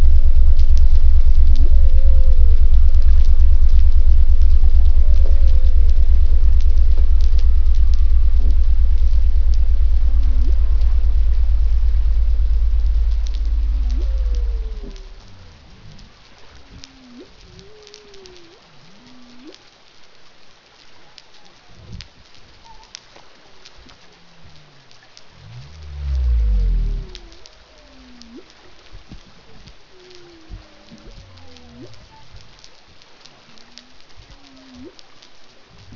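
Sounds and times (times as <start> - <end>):
pygmy blue whale song: 0.6 - 19.6, 24.5 - 28.5, 29.9 - 32.4.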